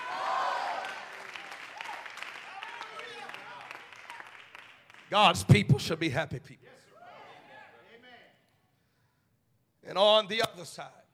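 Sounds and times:
crowd shouting and cheering: 0.0 - 4.3
crowd applauding: 0.0 - 5.6
speech: 5.1 - 6.8, 9.9 - 11.0.

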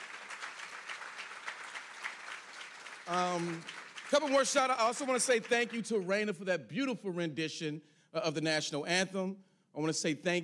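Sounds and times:
audience applause: 0.0 - 5.8
speech: 3.1 - 10.4.

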